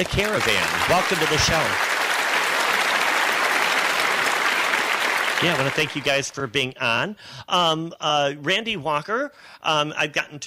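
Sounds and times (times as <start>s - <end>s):
speech: 0.0s - 2.0s, 5.4s - 10.4s
audience applause for a show's guests: 0.0s - 6.4s.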